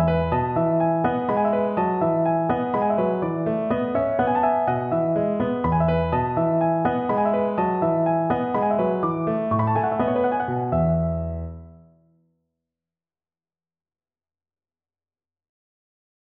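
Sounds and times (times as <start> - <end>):
piano: 0.0 - 12.1.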